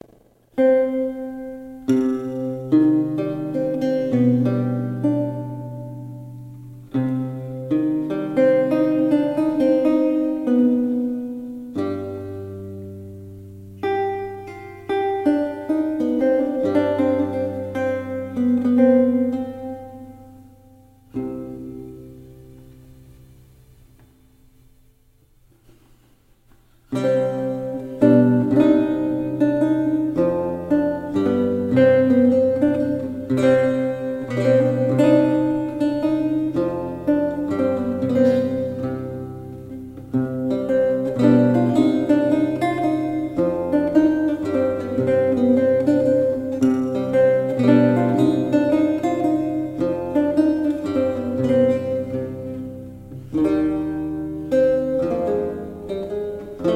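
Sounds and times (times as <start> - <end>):
prelude minuet: 0.0 - 24.1, 25.6 - 56.7.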